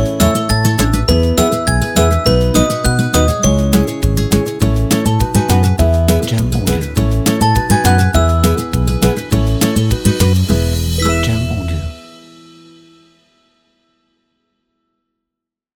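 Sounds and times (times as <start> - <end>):
happy folk background music: 0.0 - 13.0.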